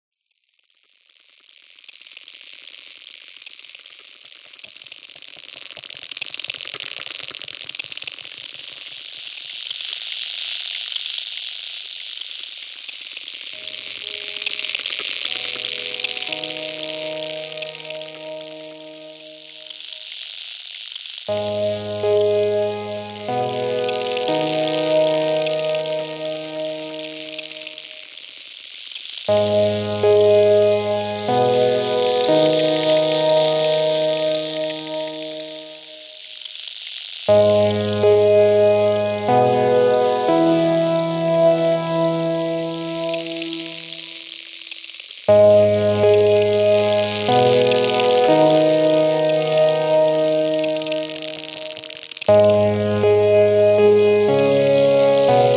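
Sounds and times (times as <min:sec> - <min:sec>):
ambient music motif: 0:13.6 - 0:20.0, 0:21.3 - 0:28.1, 0:29.3 - 0:36.2, 0:37.3 - 0:44.3, 0:45.3 - 0:55.5.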